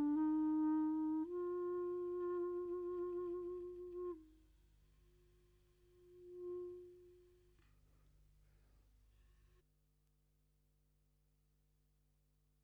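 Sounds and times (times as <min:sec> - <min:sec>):
E-flat clarinet: 0:00.0 - 0:07.7.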